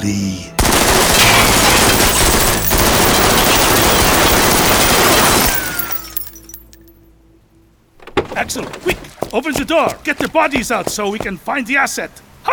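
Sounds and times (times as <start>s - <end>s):
speech: 0.0s - 0.5s, 8.4s - 12.5s
automatic machine-gun fire: 0.6s - 6.0s
breaking glass and debris settling: 1.1s - 7.0s.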